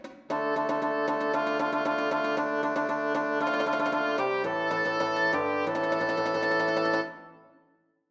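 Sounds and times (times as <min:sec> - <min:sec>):
fanfare: 0:00.3 - 0:07.6.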